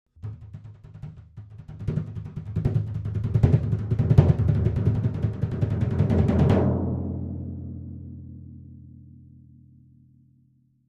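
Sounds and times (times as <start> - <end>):
thin pipe timpani played by hand, muted with accents: 0.2 - 8.1.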